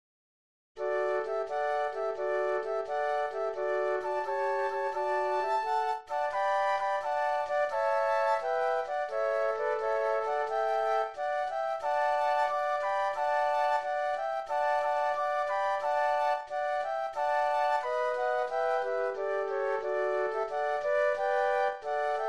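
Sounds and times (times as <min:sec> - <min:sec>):
flute trio playing: 0:00.8 - 0:22.2.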